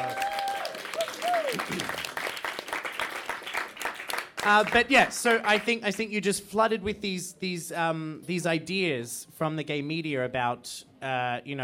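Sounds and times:
audience applause: 0:00.0 - 0:05.8
speech: 0:04.4 - 0:11.6.

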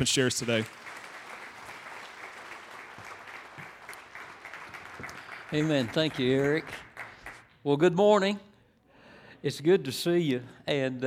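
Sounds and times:
speech: 0:00.0 - 0:01.0, 0:05.5 - 0:06.9, 0:07.6 - 0:08.5, 0:09.4 - 0:11.0
audience applause: 0:00.0 - 0:07.5.

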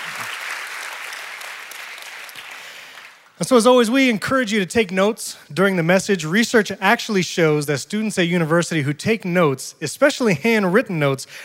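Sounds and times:
round of applause: 0:00.0 - 0:03.4
speech: 0:03.4 - 0:11.4.

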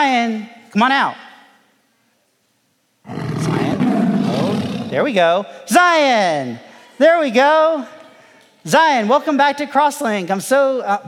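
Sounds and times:
speech: 0:00.0 - 0:01.2, 0:04.9 - 0:08.0, 0:08.6 - 0:11.0
lion roaring: 0:03.0 - 0:05.0.

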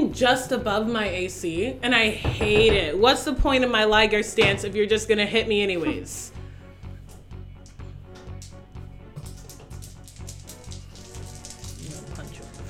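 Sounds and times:
speech: 0:00.1 - 0:06.4
many dice rattling: 0:09.2 - 0:12.6.

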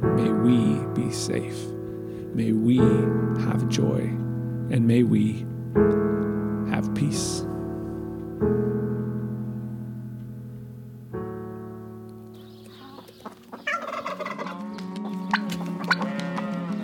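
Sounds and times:
speech: 0:00.2 - 0:07.5, 0:08.4 - 0:09.0
overlapping animal calls in a barn: 0:12.4 - 0:16.8
cattle mooing in a barn: 0:14.2 - 0:16.8.

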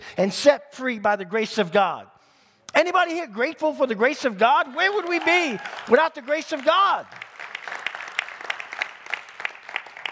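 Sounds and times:
speech: 0:00.2 - 0:07.2
audience clapping in unison: 0:04.3 - 0:10.1
scattered applause: 0:04.5 - 0:10.1.

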